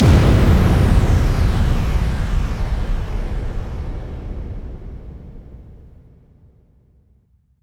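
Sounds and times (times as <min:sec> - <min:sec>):
bass drum FX kicks: 0:00.0 - 0:05.8.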